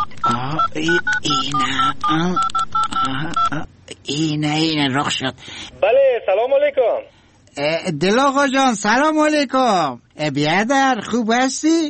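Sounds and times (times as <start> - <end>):
touch-tone beeps as a phone number is keyed in: 0.0 - 3.6
speech: 0.3 - 11.8.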